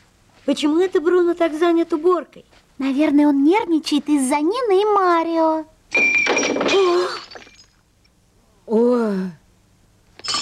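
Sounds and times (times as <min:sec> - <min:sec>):
speech: 0:00.5 - 0:06.8, 0:08.7 - 0:09.4
ceramic plate smashing: 0:05.9 - 0:07.8.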